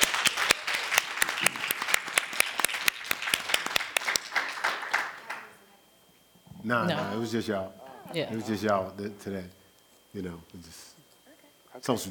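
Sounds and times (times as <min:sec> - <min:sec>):
hand clapping applause from a small group: 0:00.0 - 0:05.5
speech: 0:06.6 - 0:11.0, 0:11.8 - 0:12.0.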